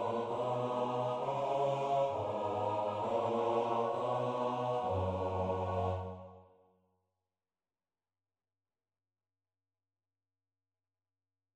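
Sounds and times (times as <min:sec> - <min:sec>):
chorale bass part: 0:00.0 - 0:06.3.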